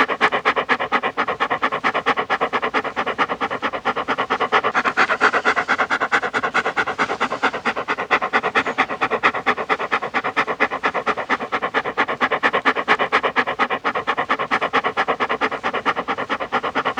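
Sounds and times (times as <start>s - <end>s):
dog panting: 0.0s - 16.9s.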